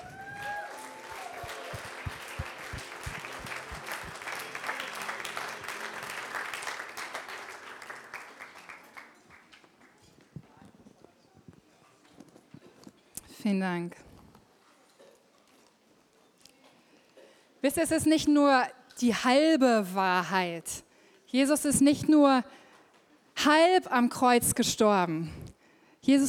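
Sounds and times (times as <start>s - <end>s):
audience applause: 0.0s - 10.0s
speech: 13.5s - 14.1s, 17.6s - 22.6s, 23.4s - 25.4s, 26.0s - 26.2s.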